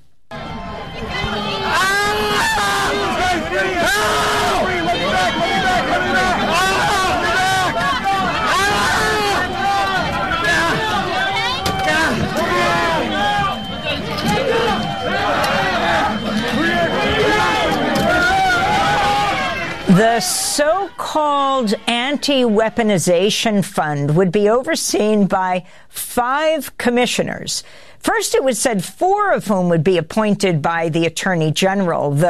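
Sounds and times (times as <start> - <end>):
violent mob crushing officer against door: 0.4 - 23.2
officer pinned against a door by the mob: 1.6 - 20.6
speech: 20.0 - 32.2.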